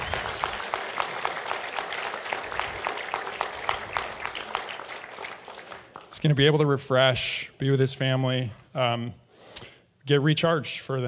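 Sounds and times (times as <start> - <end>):
audience applause: 0.0 - 6.4
speech: 6.2 - 9.2, 10.1 - 11.0.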